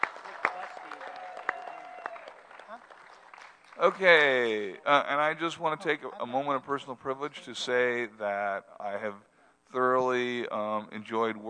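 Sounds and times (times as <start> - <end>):
crowd round of applause: 0.0 - 4.7
speech: 2.7 - 3.0, 3.8 - 11.4.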